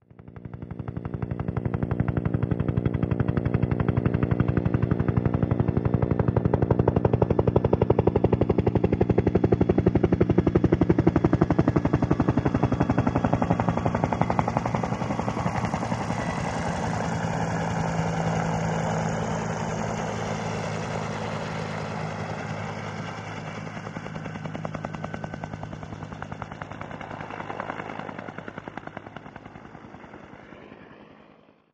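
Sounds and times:
Huey helicopter: 0.0 - 31.7.

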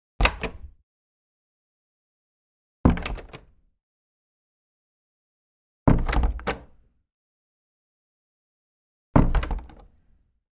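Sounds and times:
wooden door opening and closing: 0.2 - 0.8, 2.9 - 3.5, 5.9 - 6.8, 9.2 - 9.9.

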